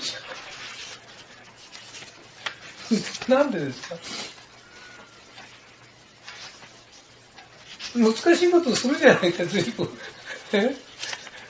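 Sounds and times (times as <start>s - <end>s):
book page being turned: 0.0s - 4.5s, 5.1s - 9.1s, 10.8s - 11.4s
speech: 2.9s - 4.2s, 8.0s - 10.8s.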